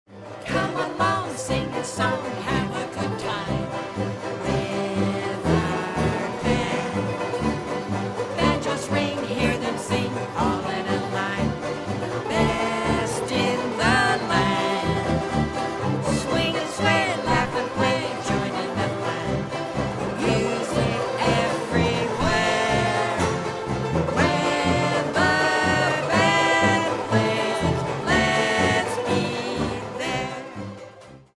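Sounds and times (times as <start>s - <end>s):
banjo band playing polka: 0.1s - 31.3s.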